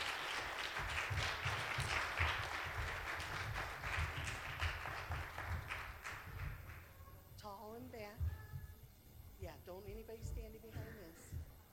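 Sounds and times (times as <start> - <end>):
audience clapping for children: 0.0 - 6.9
speech: 9.5 - 11.5.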